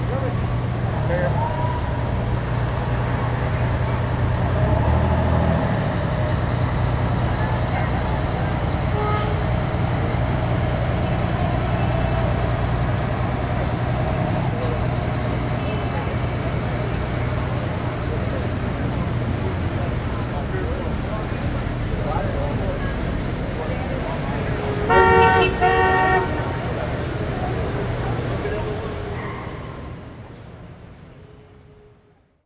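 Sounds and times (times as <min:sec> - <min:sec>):
people in the city: 0:00.0 - 0:32.4
street traffic: 0:00.0 - 0:32.4
bus whistle: 0:08.8 - 0:12.3, 0:24.8 - 0:27.0.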